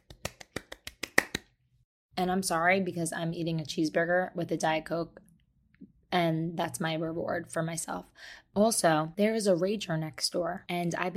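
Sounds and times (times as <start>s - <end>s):
hand clapping: 0.0s - 1.5s
speech: 2.2s - 5.3s, 6.1s - 11.1s.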